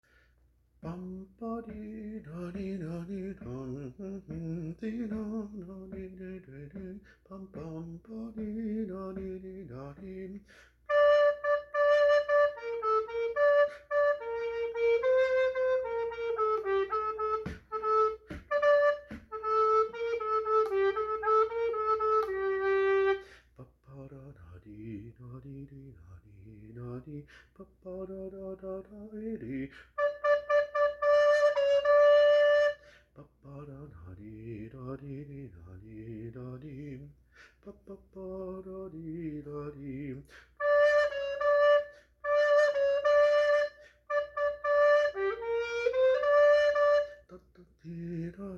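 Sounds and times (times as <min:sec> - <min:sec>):
tenor recorder playing: 0:10.9 - 0:23.3, 0:30.0 - 0:32.9, 0:40.6 - 0:47.4.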